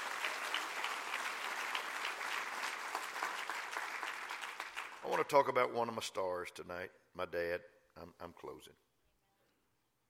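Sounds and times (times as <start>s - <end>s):
crowd clapping: 0.0s - 5.5s
speech: 5.1s - 8.9s.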